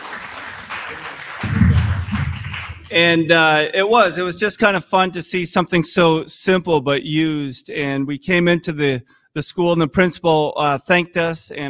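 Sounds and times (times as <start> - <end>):
audience applause: 0.0 - 3.2
speech: 2.9 - 11.6.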